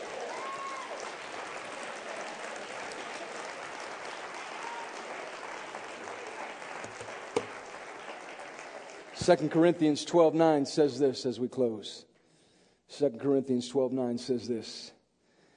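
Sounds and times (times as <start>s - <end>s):
crowd clapping: 0.0s - 10.0s
speech: 9.2s - 12.1s, 12.9s - 15.0s.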